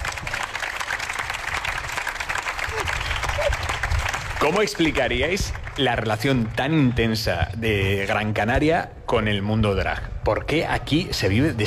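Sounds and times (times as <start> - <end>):
audience applause: 0.0 - 6.1
speech: 4.4 - 11.6.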